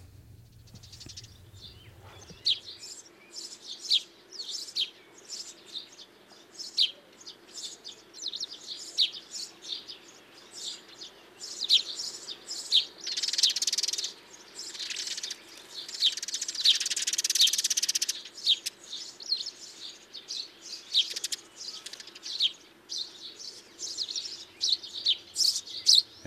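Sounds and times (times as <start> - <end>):
tree sparrow chattering calls: 0.0 - 3.1, 11.4 - 26.2.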